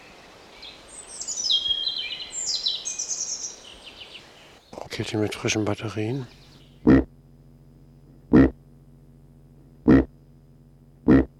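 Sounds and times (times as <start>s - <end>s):
speech: 5.0s - 7.0s
domestic pig grunting: 6.8s - 7.1s, 8.3s - 8.6s, 9.8s - 10.1s, 11.0s - 11.3s.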